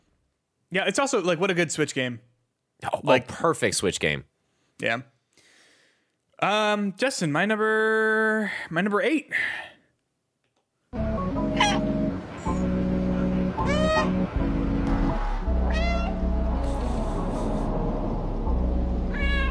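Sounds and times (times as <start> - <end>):
speech: 0.7 - 5.1, 6.4 - 9.7
droning video game soundtrack: 11.0 - 19.4
cat meows from the video game Stray: 11.6 - 11.8, 13.6 - 14.2, 15.6 - 16.2, 19.1 - 19.4.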